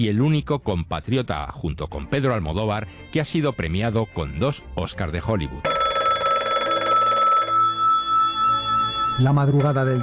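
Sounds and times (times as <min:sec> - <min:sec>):
speech: 0:00.0 - 0:05.8, 0:09.2 - 0:10.0
telephone bell ringing: 0:05.6 - 0:10.0.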